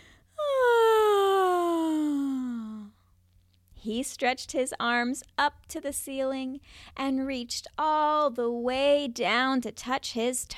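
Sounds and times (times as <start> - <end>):
person imitating loud monkey yawn: 0.4 - 2.9
speech: 3.8 - 10.5.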